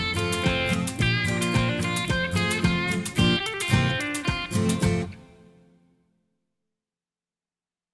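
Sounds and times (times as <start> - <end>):
instrumental music: 0.0 - 5.9.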